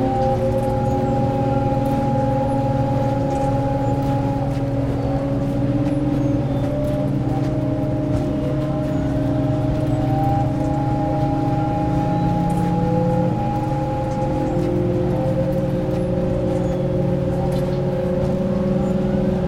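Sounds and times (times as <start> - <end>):
over-landing truck engine droning between Delhi and Kathmandu: 0.0 - 19.4
road noise: 0.0 - 19.4.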